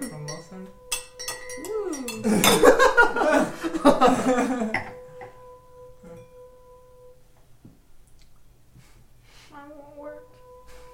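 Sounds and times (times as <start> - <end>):
clinking glassware: 0.0 - 6.8
ringing tones from glass rims being rubbed: 0.0 - 7.2
speech: 2.2 - 4.8
laughter: 2.2 - 4.9.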